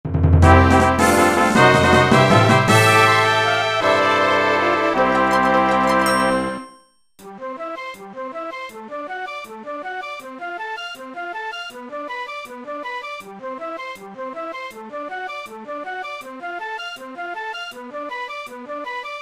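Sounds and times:
win jingle: 0.4 - 7.1.

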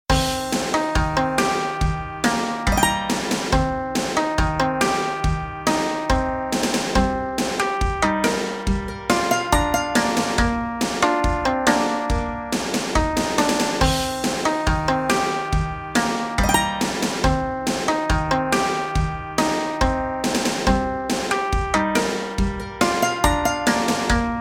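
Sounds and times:
menu music: 0.1 - 24.3.

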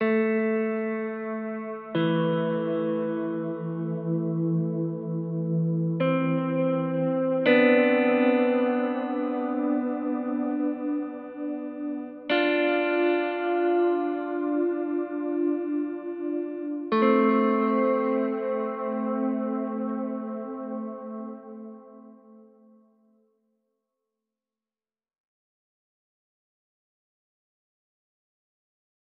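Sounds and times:
guitar: 0.0 - 23.2.

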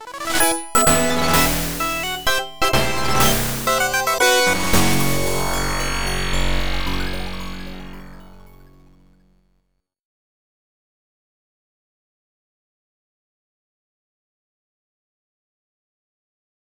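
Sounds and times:
boss defeat sound: 0.0 - 9.2.

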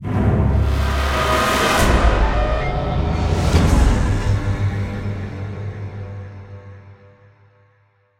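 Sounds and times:
string instrument: 0.0 - 7.6.

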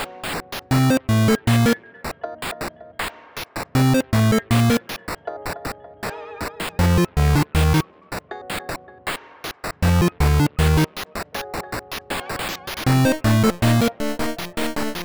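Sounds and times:
8-bit chiptune music: 0.0 - 1.8, 3.8 - 5.0, 6.4 - 7.9, 9.8 - 15.0.

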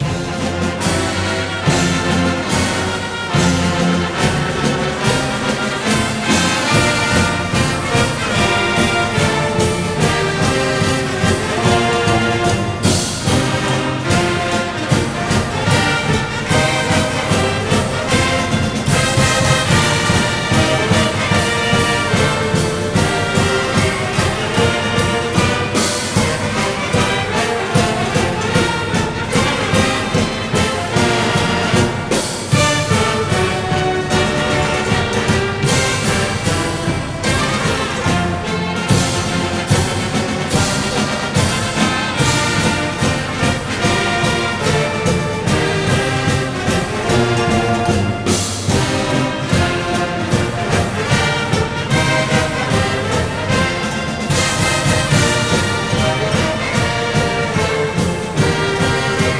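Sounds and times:
song: 0.0 - 59.3.

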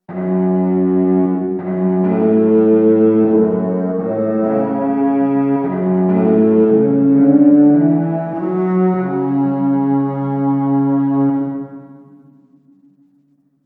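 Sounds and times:
cello: 0.0 - 12.6.

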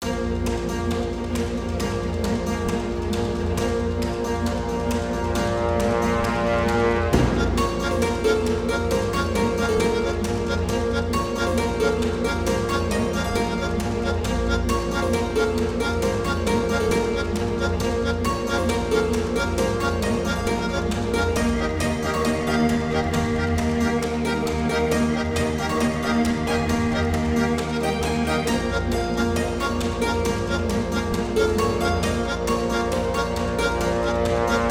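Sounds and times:
human normal battle music: 0.0 - 34.6.

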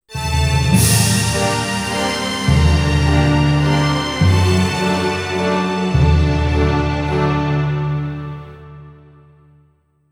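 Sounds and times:
classical music: 0.1 - 9.8.

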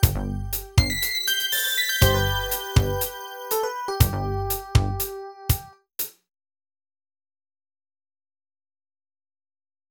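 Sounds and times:
victory jingle: 0.8 - 5.2.

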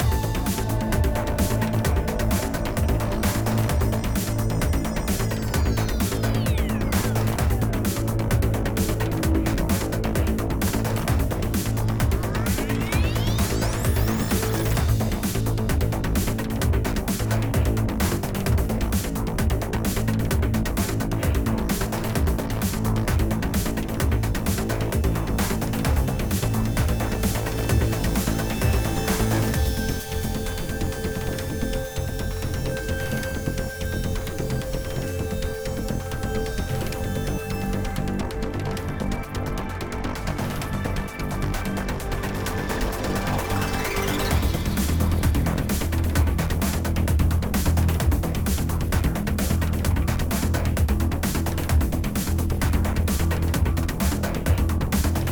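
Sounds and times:
combat music: 0.0 - 55.3.

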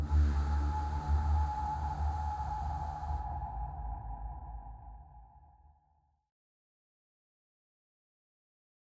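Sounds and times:
swamp horror ambience: 0.0 - 5.8.

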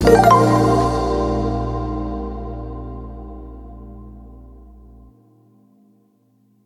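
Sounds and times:
retry jingle: 0.0 - 1.9.

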